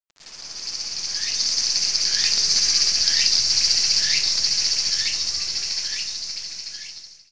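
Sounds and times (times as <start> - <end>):
cicada: 0.2 - 7.3.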